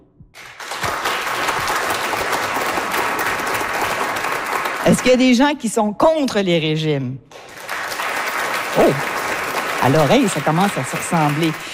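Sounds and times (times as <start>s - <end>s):
audience applause in a bar: 0.4s - 5.4s, 7.3s - 11.7s
speech: 4.8s - 7.4s, 8.8s - 9.1s, 9.8s - 11.7s.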